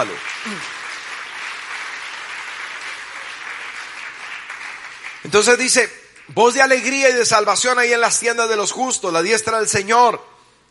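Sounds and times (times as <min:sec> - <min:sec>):
speech: 0:00.0 - 0:00.8, 0:05.2 - 0:10.3
audience applause: 0:00.0 - 0:05.8.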